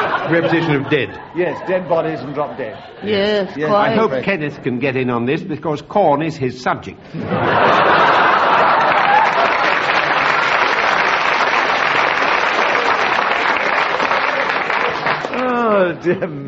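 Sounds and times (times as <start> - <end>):
laughter: 0.0 - 4.1, 7.1 - 10.6, 14.1 - 16.4
speech: 0.3 - 8.2, 16.0 - 16.4
audience applause: 7.5 - 15.7.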